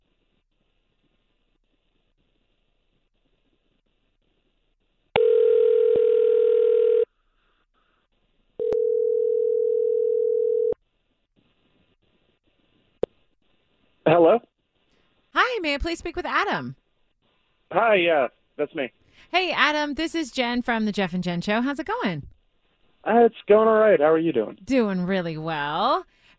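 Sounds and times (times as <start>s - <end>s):
telephone ringback tones: 5.2s - 7.1s, 8.6s - 10.7s
speech: 15.7s - 16.8s, 17.7s - 22.3s, 23.0s - 26.2s.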